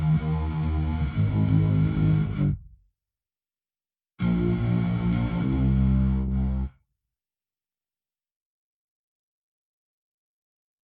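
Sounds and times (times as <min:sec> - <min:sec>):
bass: 0:00.0 - 0:02.9, 0:04.2 - 0:06.8.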